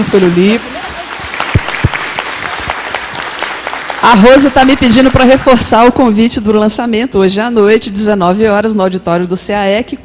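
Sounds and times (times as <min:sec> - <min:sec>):
speech: 0:00.0 - 0:00.8, 0:04.0 - 0:10.0
audience applause for new book authors at a group session: 0:00.7 - 0:05.2.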